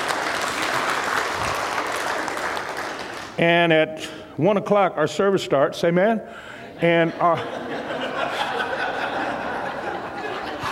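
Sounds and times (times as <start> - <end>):
audience clapping: 0.0 - 3.4
speech: 3.4 - 7.8
laughter: 6.7 - 10.7.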